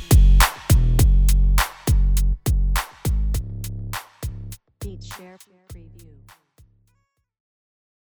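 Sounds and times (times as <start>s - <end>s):
urban beat sample: 0.0s - 6.1s.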